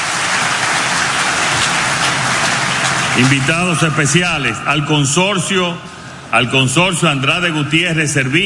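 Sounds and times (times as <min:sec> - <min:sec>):
crowd applauding: 0:00.0 - 0:05.5
speech: 0:03.2 - 0:08.4.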